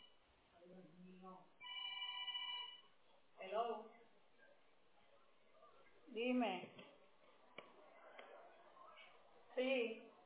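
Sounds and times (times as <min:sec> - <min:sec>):
speech: 0:00.6 - 0:01.6, 0:06.1 - 0:06.8, 0:09.6 - 0:10.1
mobile phone ringing: 0:01.6 - 0:02.9.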